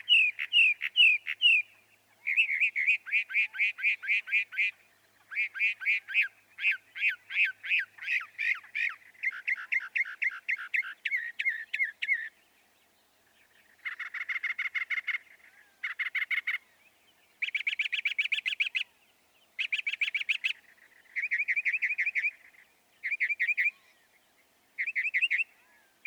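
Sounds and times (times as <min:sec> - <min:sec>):
northern mockingbird song: 0:00.0 - 0:26.0.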